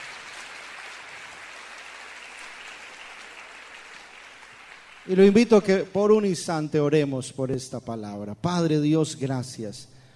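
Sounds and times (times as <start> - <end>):
audience applause: 0.0 - 5.8
speech: 5.0 - 10.0.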